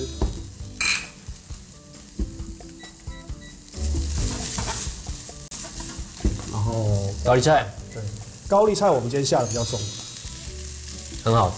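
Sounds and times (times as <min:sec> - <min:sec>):
rice stir-fried in a wok, sizzling: 0:00.0 - 0:11.5
spatula scraping and tossing in a wok: 0:04.1 - 0:06.6
speech: 0:06.8 - 0:10.0, 0:11.2 - 0:11.5.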